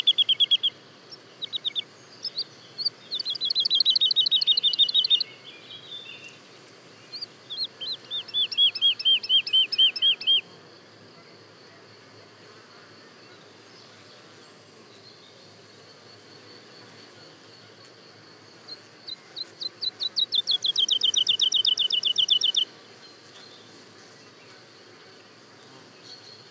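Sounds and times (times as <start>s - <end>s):
woodlark song: 0.0s - 6.4s, 7.0s - 10.4s, 19.4s - 22.7s.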